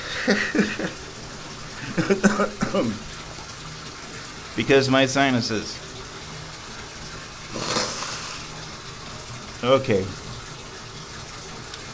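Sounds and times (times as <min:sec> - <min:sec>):
laughter: 0:00.1 - 0:01.0
speech: 0:00.2 - 0:01.0, 0:02.0 - 0:03.2, 0:04.6 - 0:05.8, 0:09.6 - 0:10.2
person blowing nose in a bathroom: 0:07.5 - 0:08.6.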